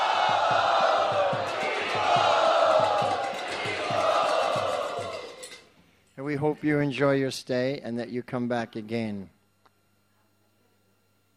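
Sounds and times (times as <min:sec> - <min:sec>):
audience shouting a warm welcome in unison: 0:00.0 - 0:05.6
steady rhythmic pulse: 0:00.0 - 0:05.8
speech: 0:06.4 - 0:09.4.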